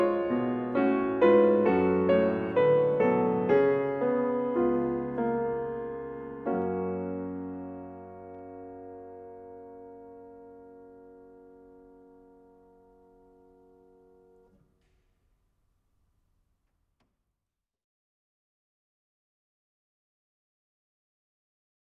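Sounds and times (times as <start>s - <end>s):
prelude and fugue in F-sharp minor: 0.0s - 14.6s.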